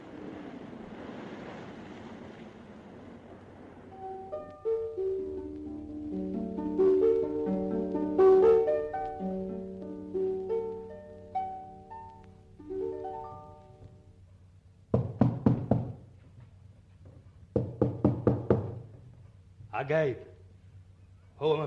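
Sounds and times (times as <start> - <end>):
soft melodic tones: 3.9 - 14.2
knocking on a door: 14.9 - 16.1, 17.5 - 18.9
speech: 19.8 - 20.3, 21.4 - 21.6.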